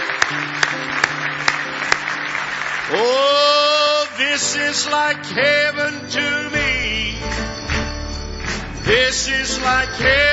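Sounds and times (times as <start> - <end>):
audience hand clapping: 0.0 - 4.8, 7.2 - 10.3
speech: 2.9 - 3.2, 4.4 - 7.1, 8.9 - 10.3.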